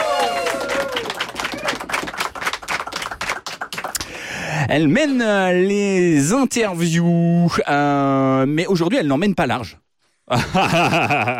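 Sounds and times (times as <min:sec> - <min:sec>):
people cheering: 0:00.0 - 0:03.1
audience applause: 0:00.0 - 0:04.1
speech: 0:04.7 - 0:11.3
laughter: 0:10.3 - 0:11.3.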